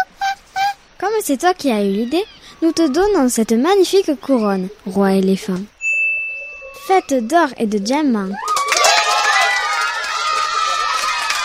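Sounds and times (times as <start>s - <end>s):
speech: 1.1s - 5.7s, 6.9s - 8.5s
crowd of animal voices cheering and applauding: 6.4s - 7.3s, 8.3s - 11.4s.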